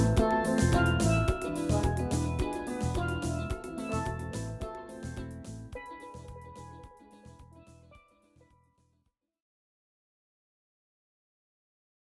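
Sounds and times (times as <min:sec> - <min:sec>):
steel band: 0:00.0 - 0:07.9.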